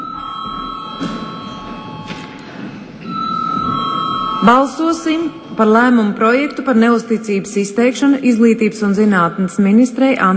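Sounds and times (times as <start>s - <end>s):
parliament chamber bell ringing: 0.0s - 2.4s, 3.0s - 6.2s
speech: 4.4s - 10.3s.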